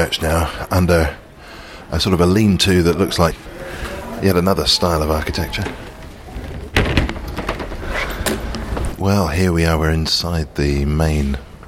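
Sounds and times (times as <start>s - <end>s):
speech: 0.0s - 1.2s, 1.9s - 5.9s, 8.3s - 11.5s
latch rattling: 5.6s - 9.0s
church side door shutting with a heavy thud: 6.4s - 9.0s.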